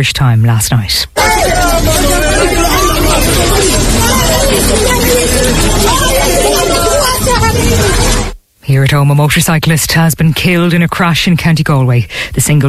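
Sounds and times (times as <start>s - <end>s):
speech: 0.0s - 2.6s, 4.1s - 5.9s, 8.7s - 12.6s
people shouting during an earthquake: 1.2s - 8.4s.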